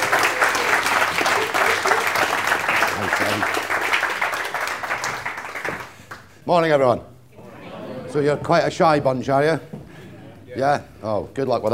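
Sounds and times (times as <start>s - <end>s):
audience applause: 0.0s - 6.3s
speech: 6.5s - 7.1s, 8.1s - 9.7s, 10.6s - 11.7s.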